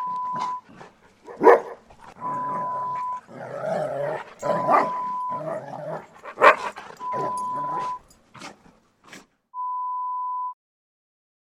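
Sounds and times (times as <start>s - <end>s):
dogs playing: 0.0s - 9.4s.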